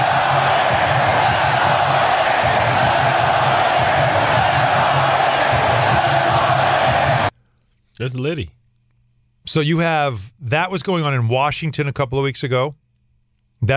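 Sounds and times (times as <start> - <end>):
arena crowd roaring: 0.0 - 7.3
speech: 8.0 - 8.6, 9.4 - 12.8, 13.6 - 13.7.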